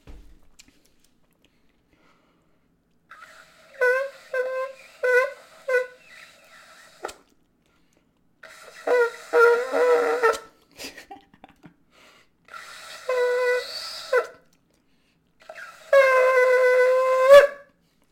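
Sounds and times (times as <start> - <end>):
ram's horn being blown: 3.1 - 7.2, 8.4 - 10.5, 12.5 - 14.4, 15.4 - 17.7.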